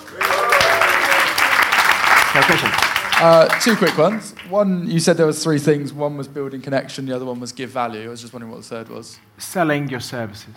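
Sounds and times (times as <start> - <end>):
audience round of applause: 0.0 - 4.6
speech: 2.4 - 10.5.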